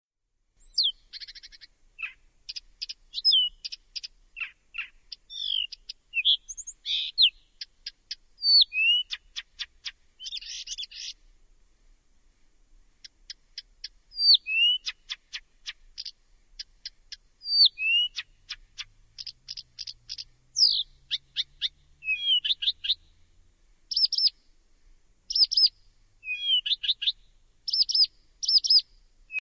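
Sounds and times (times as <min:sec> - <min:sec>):
bird chips trills and downslurred whistles: 0:02.8 - 0:07.4, 0:08.4 - 0:11.1, 0:14.2 - 0:15.4, 0:17.4 - 0:23.0, 0:26.3 - 0:28.8.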